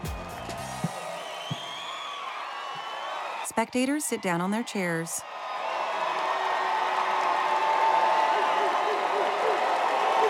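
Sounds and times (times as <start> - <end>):
crowd applauding: 0.0 - 10.2
shouted whoops: 1.1 - 3.5, 5.2 - 10.2
speech: 3.6 - 5.4.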